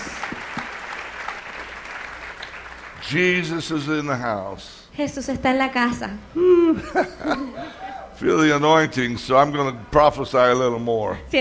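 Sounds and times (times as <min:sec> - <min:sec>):
church congregation applauding pastors at a service: 0:00.0 - 0:03.8
speech: 0:03.1 - 0:11.3
laughter: 0:06.4 - 0:08.2.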